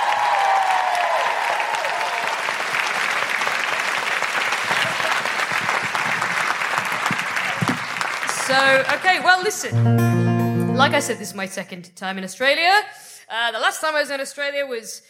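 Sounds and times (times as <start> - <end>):
audience applause welcoming a performer to the stage: 0.0 - 9.8
speech: 8.5 - 10.2, 10.8 - 15.0.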